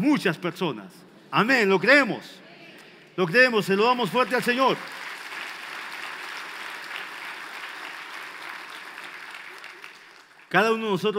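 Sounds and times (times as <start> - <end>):
speech: 0.0 - 2.4, 3.2 - 5.0, 10.5 - 11.1
audience applause: 3.9 - 10.5.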